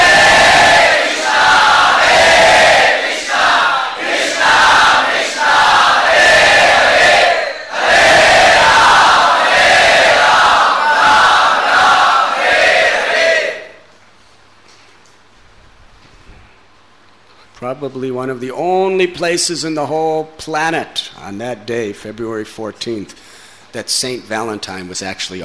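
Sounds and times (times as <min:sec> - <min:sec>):
large group chanting the holy names in Sankirtan at a Radha-Krishna festival: 0:00.0 - 0:13.8
speech: 0:17.8 - 0:25.4.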